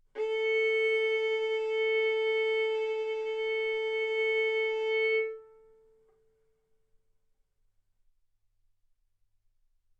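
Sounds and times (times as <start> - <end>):
violin arco on A string: 0.2 - 5.9.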